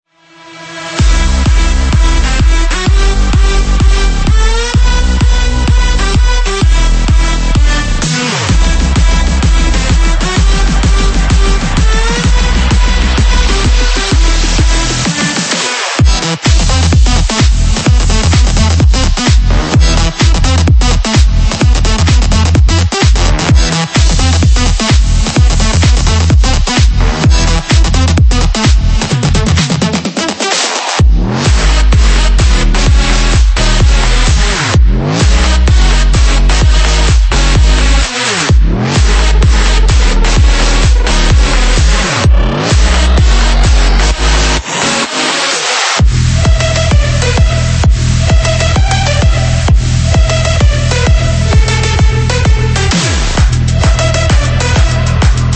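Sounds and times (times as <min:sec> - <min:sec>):
big room music: 0:00.1 - 0:55.5.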